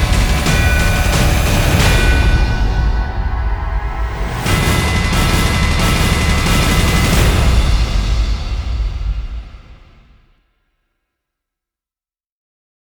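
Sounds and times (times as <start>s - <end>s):
drums building: 0.0s - 10.3s.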